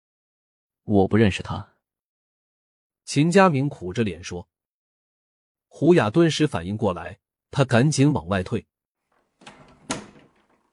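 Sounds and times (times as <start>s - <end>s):
speech: 0.9s - 1.7s, 3.1s - 4.6s, 5.7s - 8.7s
door slamming shut: 9.1s - 10.7s.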